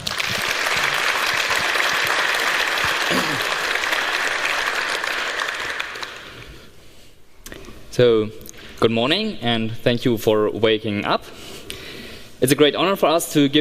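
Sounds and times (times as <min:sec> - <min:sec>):
applause from a large audience: 0:00.0 - 0:06.5
speech: 0:08.0 - 0:11.4, 0:12.4 - 0:13.6.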